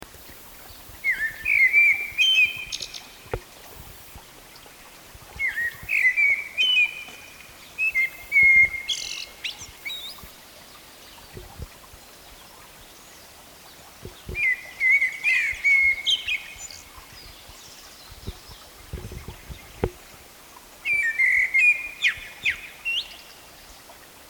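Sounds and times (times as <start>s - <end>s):
Eurasian blackbird fluty song: 0.7s - 3.3s, 5.4s - 10.3s, 14.0s - 19.9s, 20.8s - 23.4s
soft low knocks: 18.2s - 20.2s.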